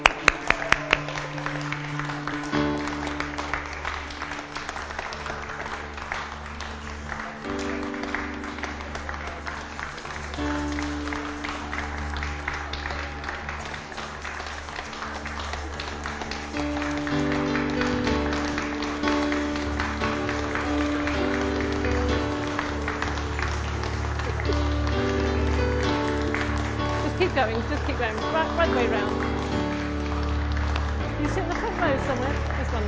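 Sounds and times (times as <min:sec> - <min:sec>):
audience applause: 0:00.0 - 0:32.8.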